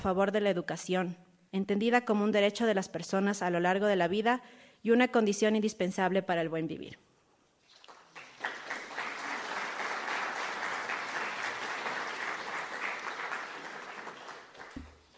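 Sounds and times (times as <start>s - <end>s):
speech: 0.0s - 7.0s
audience applause: 7.9s - 15.1s.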